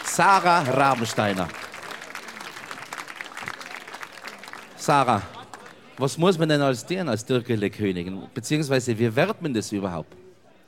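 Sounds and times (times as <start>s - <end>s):
audience applause congratulating the Türkele queen of 2026: 0.0s - 6.2s
speech: 0.2s - 1.6s, 4.8s - 5.4s, 6.0s - 10.2s.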